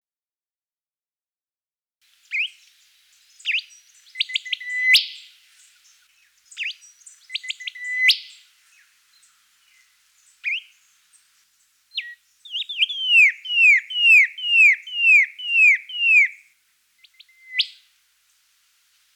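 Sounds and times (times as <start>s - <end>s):
rufous whistler singing: 2.3s - 2.6s, 3.4s - 5.3s, 6.5s - 8.4s, 10.4s - 10.8s, 12.0s - 16.4s, 17.0s - 17.8s.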